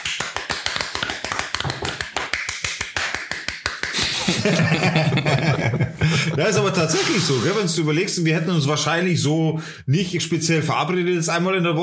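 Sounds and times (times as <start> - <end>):
applause: 0.0 - 4.4
laughter: 4.0 - 7.7
speech: 4.4 - 11.8.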